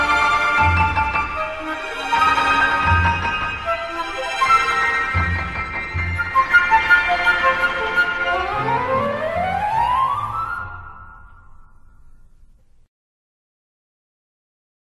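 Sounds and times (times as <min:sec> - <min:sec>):
transverse flute: 0:00.0 - 0:11.7.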